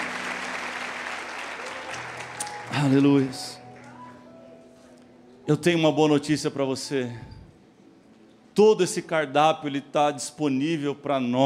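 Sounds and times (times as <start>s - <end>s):
audience applauding: 0.0s - 4.1s
speech: 2.7s - 3.6s, 5.5s - 7.4s, 8.6s - 11.4s.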